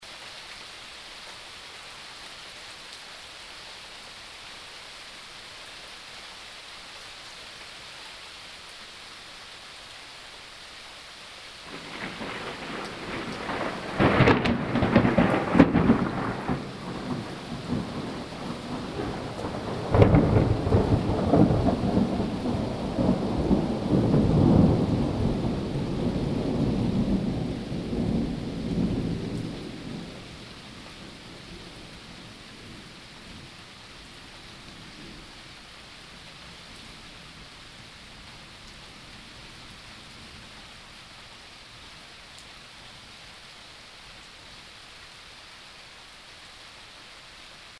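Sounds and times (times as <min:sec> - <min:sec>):
thunder in nature: 0:11.7 - 0:30.2.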